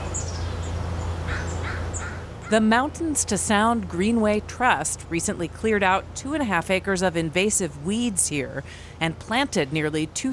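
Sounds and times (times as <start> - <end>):
faint bird calls in an urban forest north of Seattle: 0.0 - 2.6
speech: 2.5 - 10.3.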